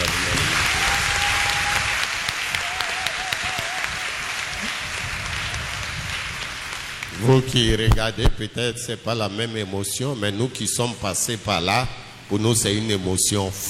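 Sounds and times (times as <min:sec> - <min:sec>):
crowd applauding: 0:00.0 - 0:08.0
speech: 0:07.3 - 0:13.6.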